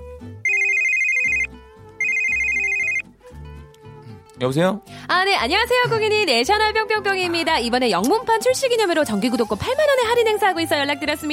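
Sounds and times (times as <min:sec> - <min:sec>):
faint music: 0:00.0 - 0:11.3
telephone ringing with electronic trills: 0:00.5 - 0:03.0
speech: 0:04.4 - 0:11.3.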